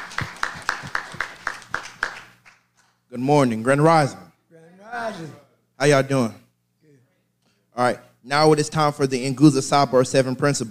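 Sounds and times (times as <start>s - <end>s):
audience hand clapping: 0.0s - 3.0s
speech: 3.1s - 4.2s, 5.1s - 6.4s, 7.8s - 10.6s.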